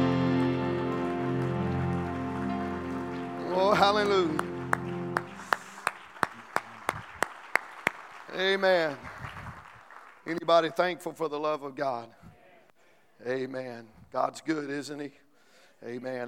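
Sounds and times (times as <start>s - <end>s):
audience clapping hands: 0.0s - 10.7s
speech: 3.6s - 4.5s, 8.4s - 9.1s, 10.3s - 12.2s, 13.2s - 15.2s, 15.8s - 16.2s.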